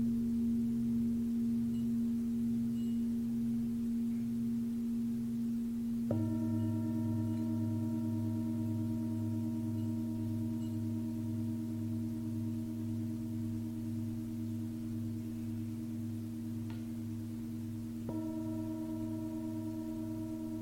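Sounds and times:
Tibetan singing bowl ringing: 0.1s - 4.5s, 5.2s - 20.5s.

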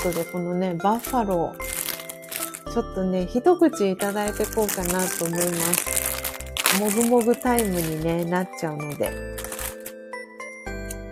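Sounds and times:
snack bag being torn open: 0.0s - 0.3s, 1.0s - 2.7s, 4.0s - 10.0s
speech: 0.0s - 1.8s, 2.7s - 6.1s, 6.7s - 9.5s.

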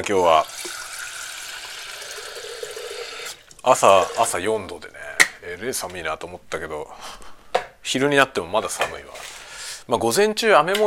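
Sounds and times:
speech: 0.0s - 0.8s, 3.6s - 10.8s
hot water pouring: 0.4s - 4.4s.

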